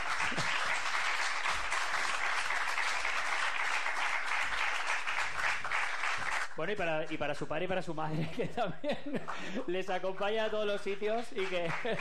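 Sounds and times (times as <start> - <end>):
audience applause: 0.0 - 6.6, 11.1 - 11.9
speech: 6.6 - 11.9
laughter: 8.1 - 9.7, 11.4 - 11.9.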